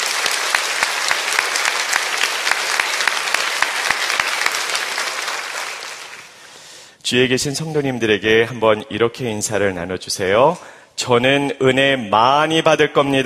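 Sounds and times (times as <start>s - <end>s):
audience applauding: 0.0s - 6.6s
speech: 7.1s - 13.2s.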